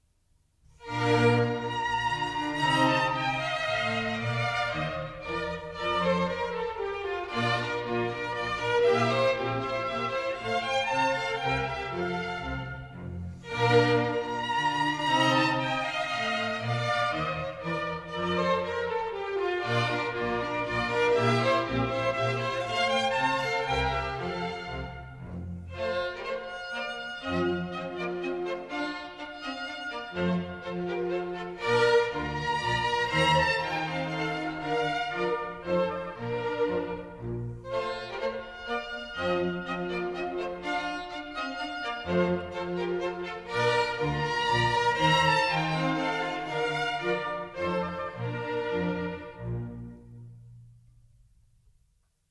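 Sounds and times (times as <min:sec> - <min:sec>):
minuet in B flat: 0:00.8 - 0:50.8.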